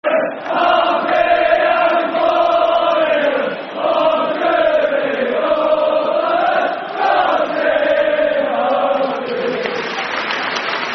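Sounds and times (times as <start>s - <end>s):
football crowd chanting an anthem: 0.0s - 10.8s.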